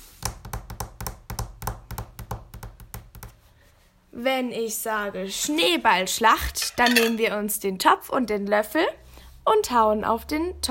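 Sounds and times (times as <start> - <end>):
fingers tapping on a table: 0.2 - 3.4
speech: 4.2 - 10.6.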